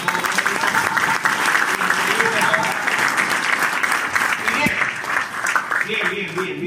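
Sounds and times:
audience applause: 0.0 - 6.5.

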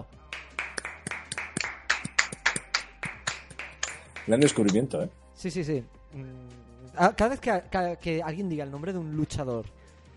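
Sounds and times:
hand clapping: 0.2 - 5.0
speech: 4.2 - 9.8.

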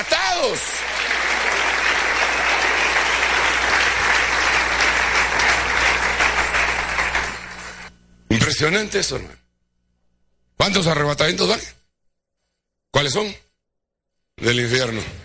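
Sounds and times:
applause from a large crowd: 0.0 - 7.9
speech: 0.4 - 0.9, 8.6 - 9.4, 10.6 - 11.8, 12.9 - 13.4, 14.4 - 15.2.

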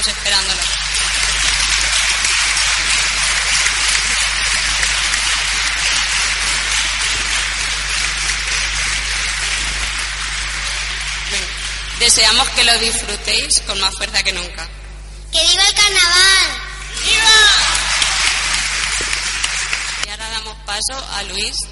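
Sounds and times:
crowd applauding: 0.0 - 12.7, 17.0 - 20.1
speech: 12.1 - 17.9, 20.7 - 21.7.

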